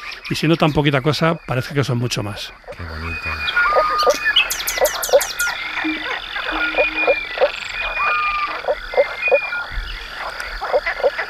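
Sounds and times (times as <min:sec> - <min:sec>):
frogs croaking through vocal sacs in a dense chorus: 0:00.0 - 0:11.2
speech: 0:00.3 - 0:04.2
high chirping notes: 0:02.7 - 0:07.4.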